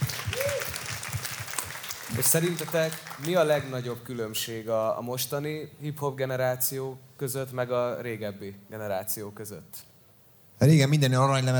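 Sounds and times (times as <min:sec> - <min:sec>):
audience applause: 0:00.0 - 0:04.0
speech: 0:02.2 - 0:09.9, 0:10.6 - 0:11.5.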